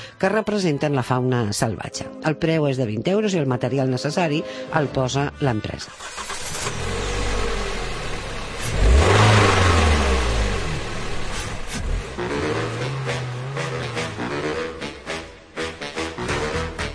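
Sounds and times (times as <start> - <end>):
speech: 0.2 - 6.6
sports car engine revving: 6.0 - 15.3.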